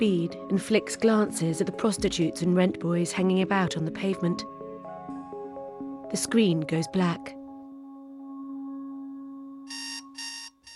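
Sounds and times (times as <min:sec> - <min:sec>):
speech: 0:00.0 - 0:04.6, 0:06.1 - 0:07.4
alarm clock buzzing: 0:09.7 - 0:10.7.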